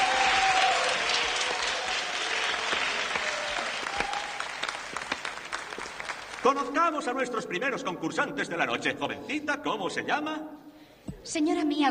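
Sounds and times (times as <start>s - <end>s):
sizable audience applause: 0.0s - 7.0s
speech: 6.4s - 10.6s, 11.2s - 11.8s.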